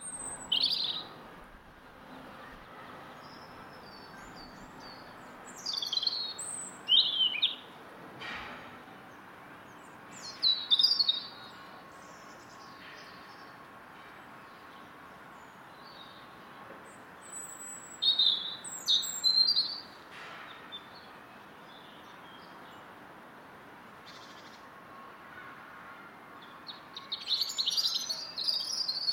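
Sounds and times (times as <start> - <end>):
loud garden robin singing in London: 0.0 - 1.2, 2.4 - 7.8, 9.0 - 22.8, 26.4 - 29.1.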